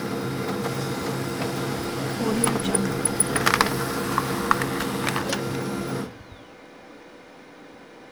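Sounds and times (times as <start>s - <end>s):
laser printer: 0.1s - 6.5s.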